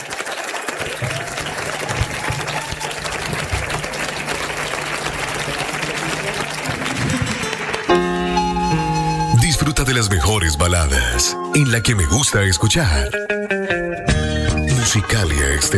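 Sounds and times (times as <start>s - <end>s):
audience applause: 0.0s - 10.6s
speech: 9.8s - 13.8s, 14.8s - 15.7s.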